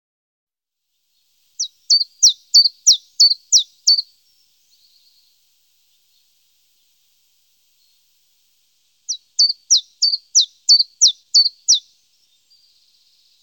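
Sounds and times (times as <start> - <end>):
Common chiffchaff singing: 1.6 - 7.0, 9.1 - 13.4.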